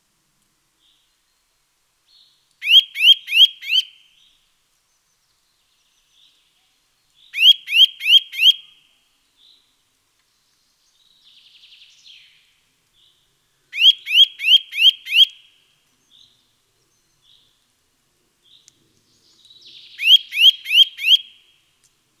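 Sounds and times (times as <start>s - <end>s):
Eurasian nuthatch Sitta europaea calling with loud rising whistles: 2.6s - 4.0s, 7.4s - 8.6s, 13.8s - 15.4s, 19.9s - 21.3s.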